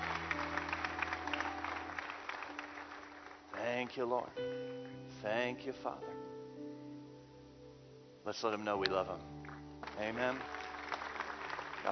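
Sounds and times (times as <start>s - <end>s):
audience applauding: 0.0s - 4.0s, 9.4s - 11.8s
speech: 3.9s - 6.3s, 8.2s - 10.6s.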